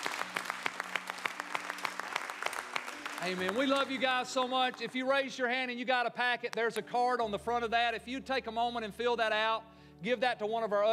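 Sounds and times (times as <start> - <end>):
audience applause: 0.0 - 4.9
speech: 3.2 - 10.9.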